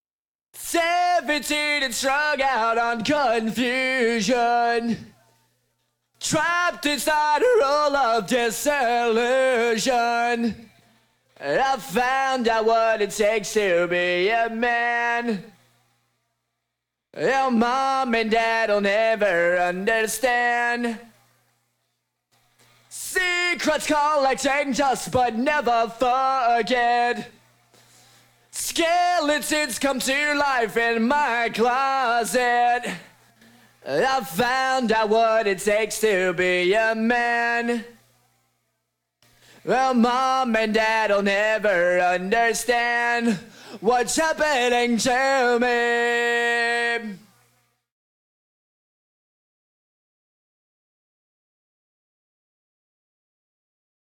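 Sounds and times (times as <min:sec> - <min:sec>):
person singing: 0:00.6 - 0:05.3, 0:06.2 - 0:10.8, 0:11.4 - 0:15.6, 0:17.2 - 0:21.1, 0:22.9 - 0:27.4, 0:28.6 - 0:33.2, 0:33.8 - 0:38.0, 0:39.6 - 0:47.4.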